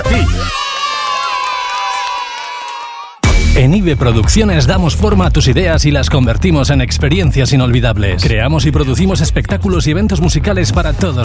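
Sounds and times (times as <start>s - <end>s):
children's audience cheering and shouting at a kids' show: 0.0s - 3.2s
speech: 3.6s - 11.2s.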